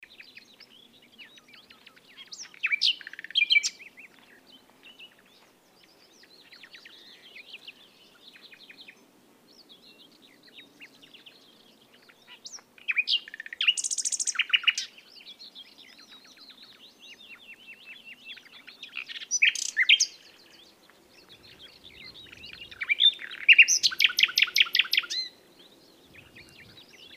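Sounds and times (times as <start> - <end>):
common nightingale singing: 0.0 - 27.1.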